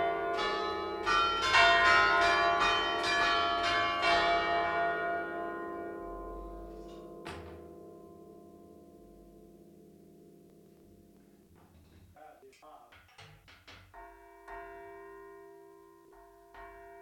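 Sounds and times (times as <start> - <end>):
church bells ringing in Genova Liguria: 0.0 - 10.5, 13.9 - 16.9.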